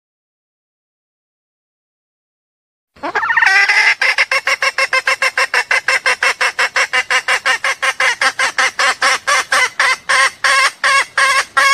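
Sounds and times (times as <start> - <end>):
junglefowl clucking: 3.0 - 11.7.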